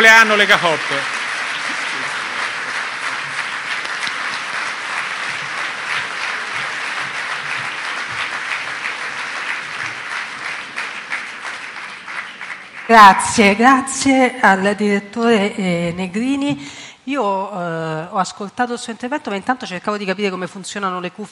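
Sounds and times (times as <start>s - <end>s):
speech: 0.0s - 1.2s, 12.9s - 21.3s
audience applause: 0.0s - 13.3s.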